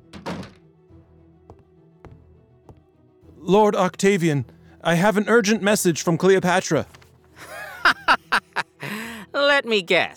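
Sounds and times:
door shutting: 0.0 - 0.7
speech: 3.4 - 7.5, 9.6 - 10.1
laughter: 7.4 - 9.0.

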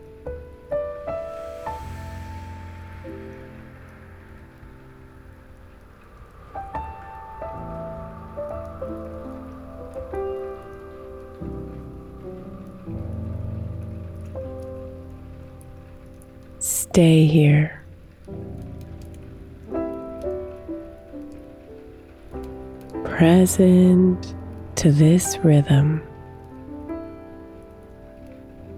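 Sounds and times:
raindrops crashing: 0.0 - 28.7
speech: 17.0 - 17.8, 23.2 - 26.1.

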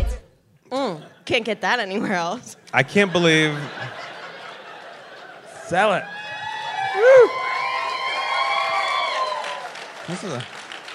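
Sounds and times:
speech: 1.3 - 4.0, 5.7 - 6.2, 10.1 - 10.6
laughter: 2.8 - 7.4
crowd cheering and applauding: 5.8 - 10.9.

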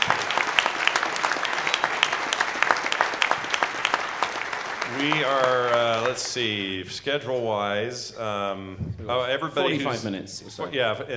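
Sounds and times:
audience applause: 0.0 - 6.8
speech: 5.0 - 11.1.

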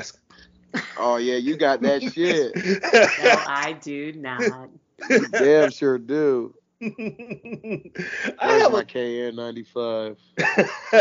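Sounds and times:
laughter: 0.8 - 3.7, 4.4 - 11.0
person sneezing: 1.0 - 3.5, 4.4 - 6.4, 8.0 - 8.8
speech: 1.0 - 11.0.

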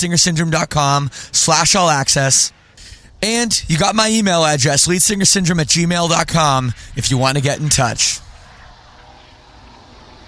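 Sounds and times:
speech: 0.0 - 8.3
loud airplane: 6.6 - 10.2.

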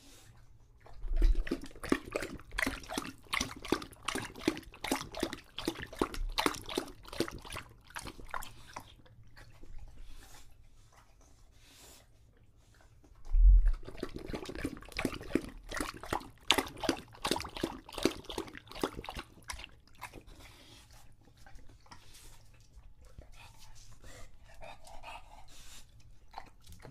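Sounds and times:
English Bulldog lapping water: 0.0 - 26.9
English Bulldog breathing: 8.3 - 14.2, 20.2 - 26.1.

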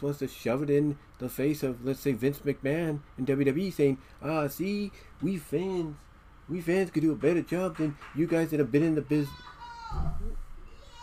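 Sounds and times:
speech: 0.0 - 10.4
woman cheering at a televised game: 9.2 - 11.0.

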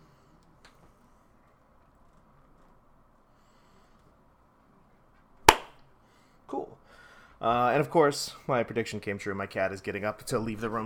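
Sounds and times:
hand clap for recording sync: 5.5 - 5.8
speech: 7.4 - 10.8.

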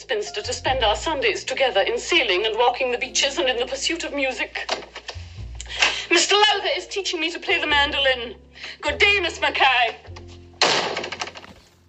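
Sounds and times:
speech: 0.1 - 5.0, 6.1 - 10.2
door slamming: 10.6 - 11.6.

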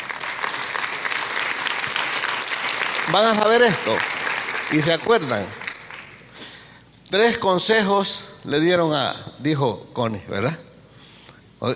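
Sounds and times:
audience applause: 0.0 - 6.2
speech: 3.1 - 4.1, 4.7 - 5.6, 7.1 - 10.6.

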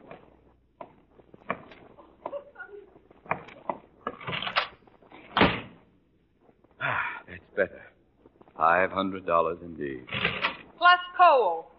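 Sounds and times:
door opening and closing: 4.0 - 5.8, 10.1 - 10.7
speech: 7.6 - 7.9, 8.6 - 11.7.

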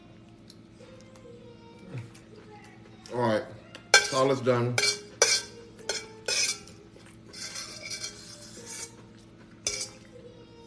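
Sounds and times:
speech: 3.1 - 3.5, 4.1 - 5.0
utensils scraping a bowl of green goddess salad: 3.9 - 10.1.

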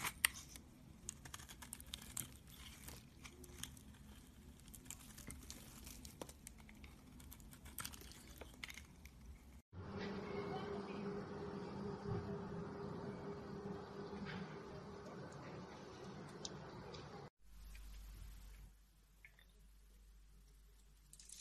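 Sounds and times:
soap carving scraping and clicking: 0.0 - 9.6
steady low hum: 9.8 - 18.7.

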